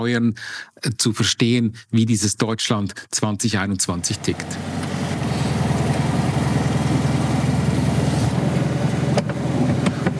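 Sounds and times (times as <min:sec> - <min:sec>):
speech: 0:00.0 - 0:04.9
1972 Fiat Cinquecento engine running: 0:04.0 - 0:10.1.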